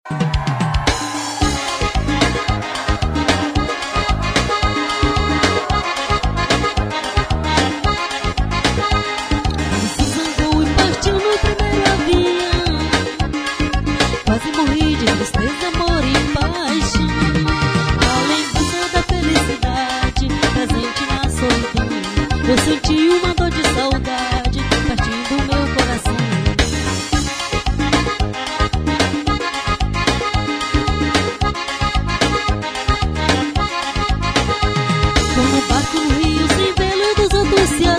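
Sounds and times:
forró music: 0.4s - 37.9s
laughter: 1.1s - 13.4s.

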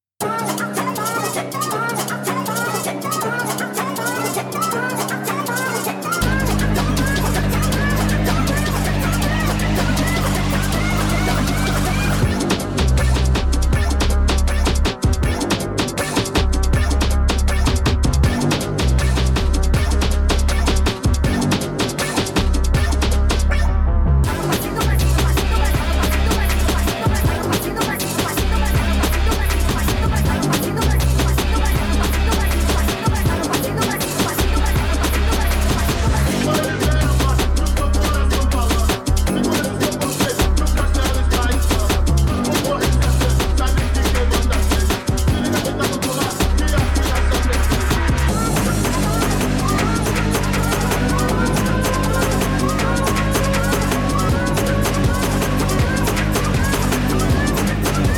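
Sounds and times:
sped-up Brazilian phonk music: 0.3s - 58.1s.

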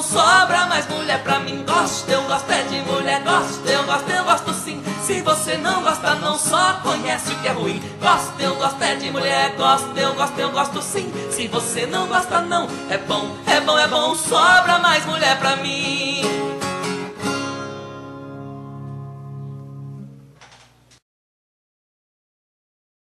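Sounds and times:
person singing: 0.0s - 16.6s
acoustic guitar: 0.0s - 21.0s.

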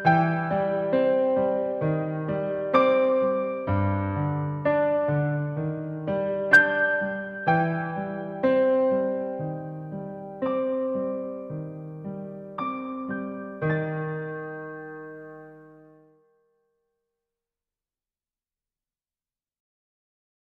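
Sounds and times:
piano cover: 0.0s - 16.3s.

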